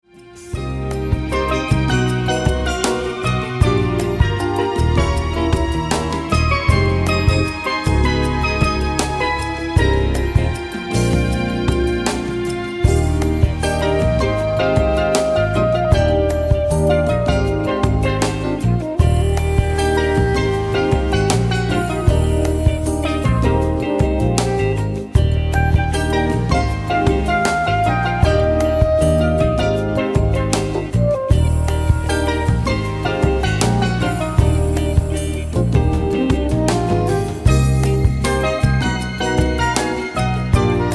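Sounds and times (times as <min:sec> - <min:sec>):
Brazilian music: 0:00.0 - 0:40.9.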